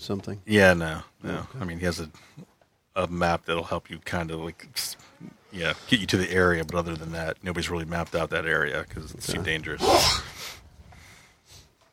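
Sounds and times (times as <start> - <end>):
speech: 0.0 - 10.6
person sneezing: 9.8 - 10.4.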